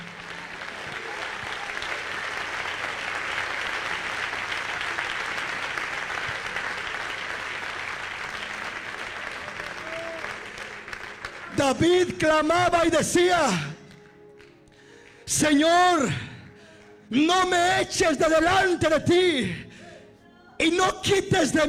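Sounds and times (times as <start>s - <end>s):
audience clapping: 0.0s - 17.3s
speech: 11.6s - 13.7s, 15.4s - 16.2s, 17.1s - 19.6s, 20.6s - 21.6s.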